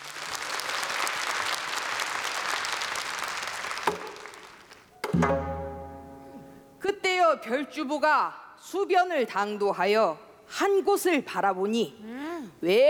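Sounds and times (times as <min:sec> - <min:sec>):
audience applause: 0:00.0 - 0:04.8
single plucked string note with sustained harmonics: 0:05.0 - 0:06.7
speech: 0:07.3 - 0:12.8.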